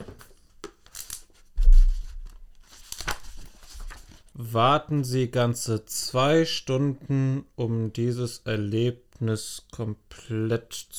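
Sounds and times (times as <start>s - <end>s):
paper brochure rustling and crinkling as it is handled: 0.0s - 4.4s
speech: 4.4s - 10.9s.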